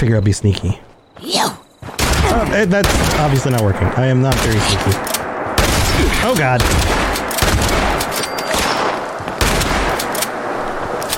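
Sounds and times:
speech: 0.0s - 1.5s, 2.2s - 5.1s, 6.2s - 7.0s
video game shotgun blasts: 2.0s - 10.4s.

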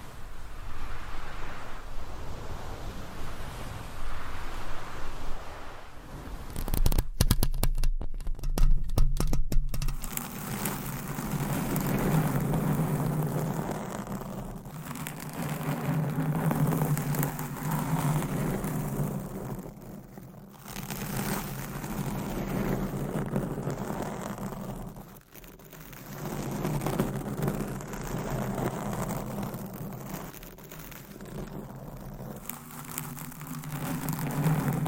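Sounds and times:
fingernails scratching and rubbing against a covered microphone: 6.4s - 7.2s, 9.9s - 34.8s
sharp crackling taps: 6.6s - 10.8s.

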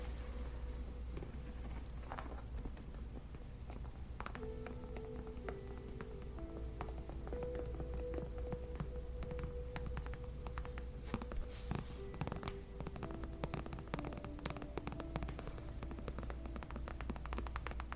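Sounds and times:
low steady hum: 0.0s - 17.9s
gentle tapping on leather: 6.8s - 17.9s.

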